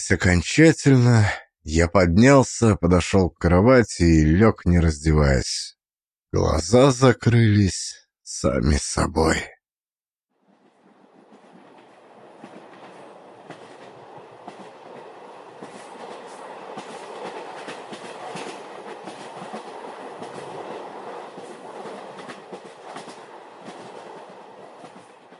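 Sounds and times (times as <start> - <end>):
speech: 0.0 - 9.6
train wheels clacking on steel rails: 10.7 - 25.3.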